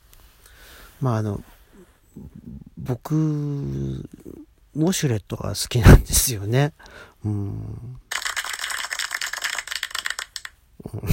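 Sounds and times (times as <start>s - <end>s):
speech: 1.0s - 1.6s, 2.2s - 8.0s, 10.8s - 11.1s
single person clapping rapidly: 8.1s - 10.6s.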